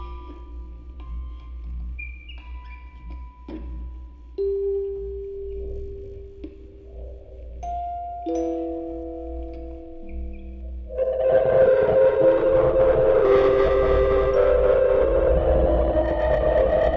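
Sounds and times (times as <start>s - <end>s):
quartet of music boxes through a vocoder on tape: 7.6s - 16.3s.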